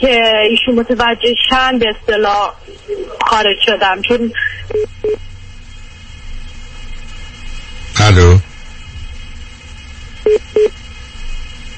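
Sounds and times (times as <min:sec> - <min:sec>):
speech: 0:00.0 - 0:05.3, 0:08.0 - 0:08.5
hiss: 0:00.0 - 0:11.7
telephone beeps after a call is cut off: 0:04.7 - 0:05.2, 0:10.3 - 0:10.7.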